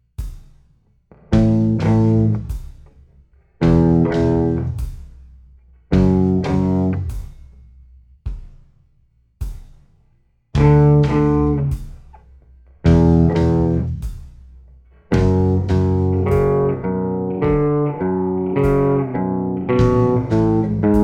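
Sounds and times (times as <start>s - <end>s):
slow guitar riff: 1.4s - 2.4s, 3.6s - 4.8s, 5.9s - 7.1s, 10.6s - 11.8s, 12.9s - 14.0s, 15.1s - 21.0s.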